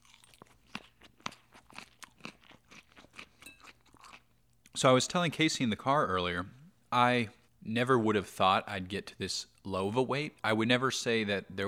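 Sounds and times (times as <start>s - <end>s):
crunchy chewing of a mouthful of salad: 0.0s - 4.8s
speech: 4.8s - 11.6s.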